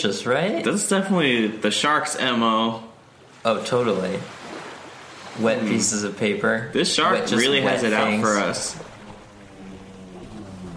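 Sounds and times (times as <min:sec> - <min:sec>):
speech: 0:00.0 - 0:04.4, 0:05.4 - 0:08.9
jet ski engine approaching: 0:04.9 - 0:10.7.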